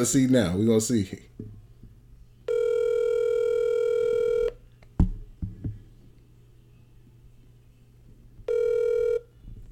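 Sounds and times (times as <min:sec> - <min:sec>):
speech: 0:00.0 - 0:01.5
buzzy telephone ringback tones: 0:02.5 - 0:04.6, 0:08.5 - 0:09.3.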